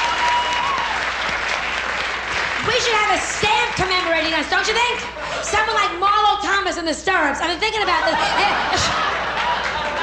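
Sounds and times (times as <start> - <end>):
audience applause: 0.0 - 4.6, 8.6 - 10.0
speech: 2.8 - 9.2
laughter: 7.8 - 10.0.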